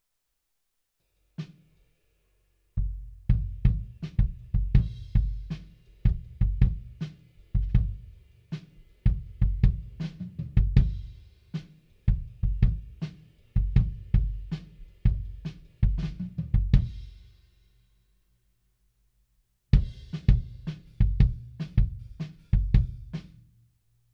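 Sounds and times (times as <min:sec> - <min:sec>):
kick drum: 0:02.8 - 0:07.0, 0:07.6 - 0:08.1, 0:09.1 - 0:11.1, 0:12.1 - 0:13.0, 0:13.6 - 0:14.5, 0:15.1 - 0:17.0, 0:19.8 - 0:23.2.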